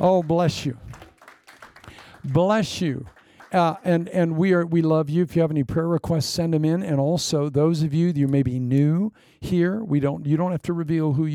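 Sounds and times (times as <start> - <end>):
speech: 0.0 - 1.0, 2.2 - 11.3
audience clapping hands: 0.0 - 4.4.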